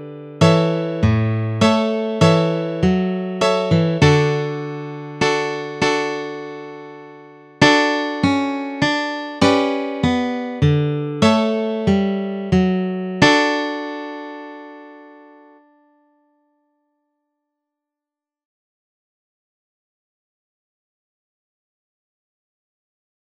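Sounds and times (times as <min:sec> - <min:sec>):
guitar melody and chords: 0:00.0 - 0:16.4.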